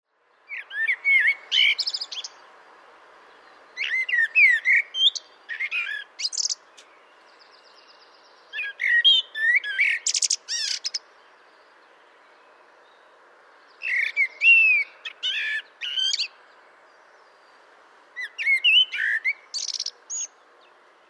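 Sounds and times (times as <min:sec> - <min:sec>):
common blackbird twittering and whistling: 0:03.8 - 0:06.6, 0:08.5 - 0:11.0, 0:13.8 - 0:16.3, 0:18.2 - 0:20.3.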